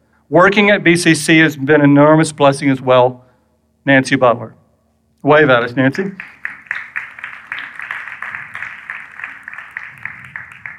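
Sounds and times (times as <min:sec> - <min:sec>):
speech: 0:00.3 - 0:03.2, 0:03.8 - 0:04.6, 0:05.2 - 0:06.4
audience applause: 0:06.0 - 0:10.7.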